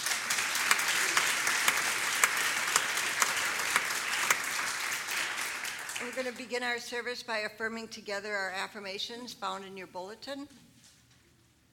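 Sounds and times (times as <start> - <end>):
audience applauding: 0.0 - 6.4
speech: 6.1 - 10.6.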